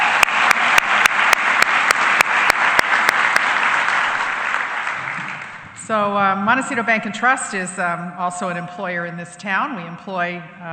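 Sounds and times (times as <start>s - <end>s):
audience applause: 0.0s - 5.8s
speech: 5.9s - 10.7s.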